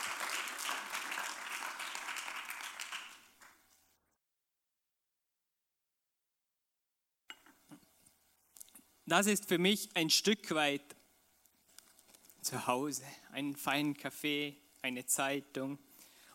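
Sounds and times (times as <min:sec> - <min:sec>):
audience applause: 0:00.0 - 0:03.7
speech: 0:09.1 - 0:11.0, 0:12.5 - 0:15.9.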